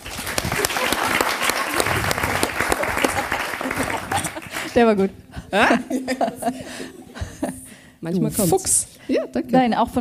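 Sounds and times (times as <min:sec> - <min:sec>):
live audience applause: 0:00.0 - 0:04.8
laughter: 0:00.4 - 0:07.8
speech: 0:04.8 - 0:07.0, 0:08.0 - 0:10.0.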